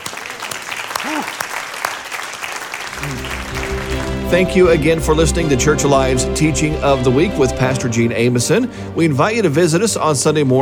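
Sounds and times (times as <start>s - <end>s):
audience applause: 0.0s - 6.5s
organ-like tone: 3.0s - 9.7s
speech: 4.3s - 10.6s.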